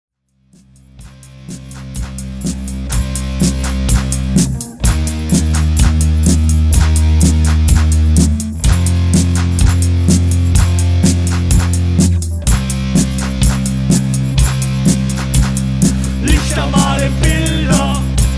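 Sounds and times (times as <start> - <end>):
disco music with heavy brass: 0.5 - 18.3.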